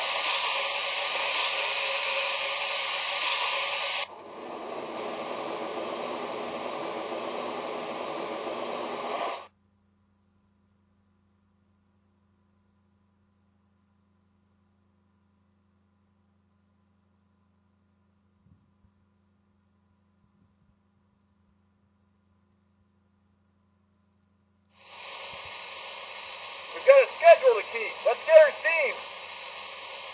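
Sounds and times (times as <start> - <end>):
trains: 0.0 - 9.5, 24.8 - 30.1.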